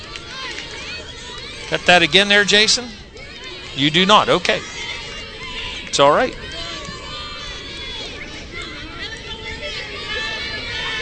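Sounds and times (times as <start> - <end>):
crowd murmuring as people file into school stands: 0.0 - 11.0
speech: 1.7 - 3.0, 3.8 - 4.7, 6.0 - 6.4.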